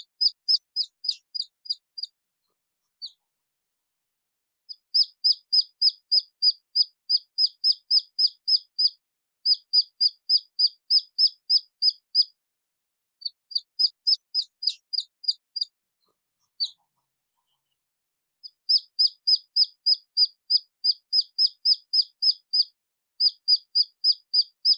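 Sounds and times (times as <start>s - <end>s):
red junglefowl chick peeping: 0.0s - 2.1s, 4.7s - 12.3s, 13.2s - 15.7s, 18.4s - 24.7s.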